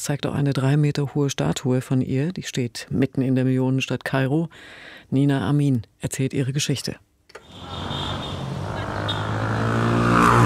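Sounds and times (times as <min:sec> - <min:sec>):
speech: 0:00.0 - 0:07.9
busy Cairo street traffic: 0:07.4 - 0:10.4
vehicle approaching and passing: 0:07.4 - 0:10.4.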